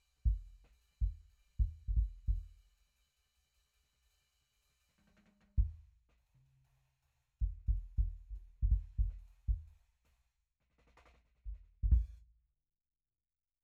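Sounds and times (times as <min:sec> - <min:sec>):
drum and bass sub kick drum: 0:00.3 - 0:02.5, 0:05.6 - 0:05.9, 0:07.4 - 0:09.8, 0:11.5 - 0:12.2.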